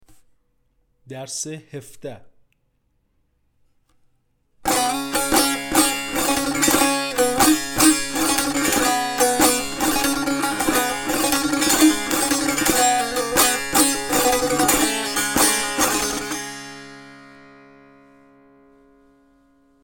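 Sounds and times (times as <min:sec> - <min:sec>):
tanbur practice: 0:04.6 - 0:18.0.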